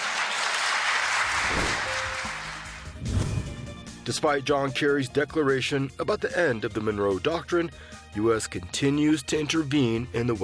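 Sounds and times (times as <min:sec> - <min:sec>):
audience applause: 0:00.0 - 0:02.8
speech: 0:04.1 - 0:10.4.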